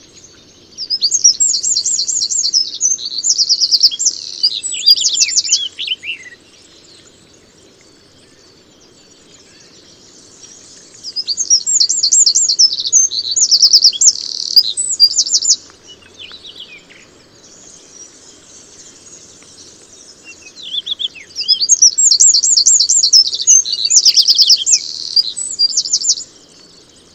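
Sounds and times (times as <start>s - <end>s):
Eurasian wren singing trills: 0.0s - 7.1s, 8.0s - 27.1s.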